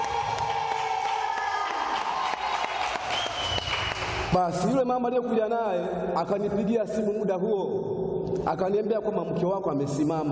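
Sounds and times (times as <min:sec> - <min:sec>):
audience applause: 0:00.0 - 0:04.3
speech: 0:04.3 - 0:10.3.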